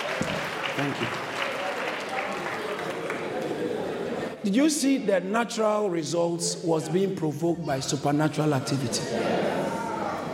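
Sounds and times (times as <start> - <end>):
audience applause: 0.0 - 4.1
murmur of crowd voices: 0.0 - 10.3
speech: 0.8 - 1.3, 4.4 - 9.6.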